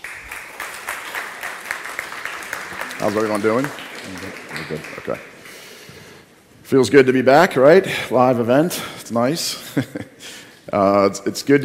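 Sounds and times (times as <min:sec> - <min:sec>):
audience applause welcoming a speaker at a live event: 0:00.0 - 0:06.2
speech: 0:03.0 - 0:05.4, 0:06.7 - 0:11.6.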